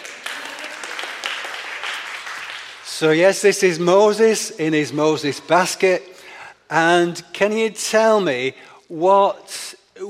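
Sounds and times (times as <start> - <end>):
audience clapping: 0.0 - 3.2
speech: 3.0 - 6.1, 6.7 - 10.0.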